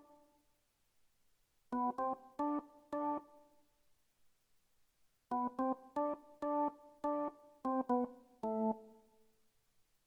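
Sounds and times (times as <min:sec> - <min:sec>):
R&B piano music: 0:01.8 - 0:03.2, 0:05.3 - 0:08.8.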